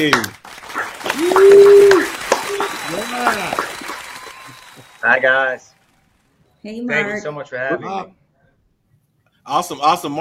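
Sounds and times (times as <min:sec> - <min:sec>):
speech: 0:00.0 - 0:00.4, 0:03.1 - 0:03.7, 0:05.0 - 0:05.7, 0:06.6 - 0:08.2, 0:09.5 - 0:10.1
studio audience applauding a guest's entrance on a talk show: 0:00.0 - 0:06.3
studio audience whooping: 0:00.6 - 0:06.1.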